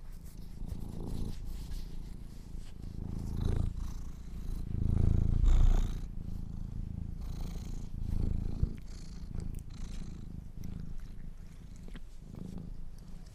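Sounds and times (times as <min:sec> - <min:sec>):
domestic cat purring: 0:00.0 - 0:13.3.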